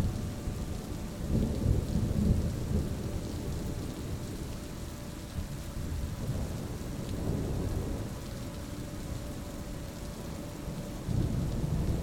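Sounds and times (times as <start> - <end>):
gentle harmonious music: 0.0 - 12.0
powerful storm: 1.2 - 4.5, 5.7 - 9.1, 10.8 - 12.0.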